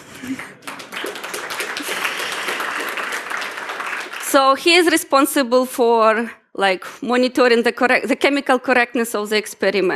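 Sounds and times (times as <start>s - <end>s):
speech: 0.2s - 0.6s, 4.3s - 9.9s
audience applause: 0.2s - 4.6s.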